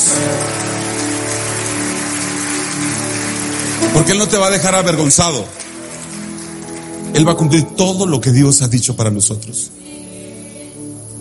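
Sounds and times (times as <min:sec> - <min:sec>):
audience applauding: 0:00.0 - 0:07.6
speech: 0:00.2 - 0:00.6, 0:03.9 - 0:05.6, 0:07.2 - 0:10.0.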